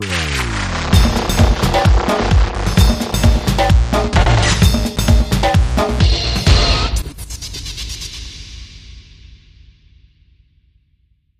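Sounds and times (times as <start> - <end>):
tribal music: 0.0 - 7.4.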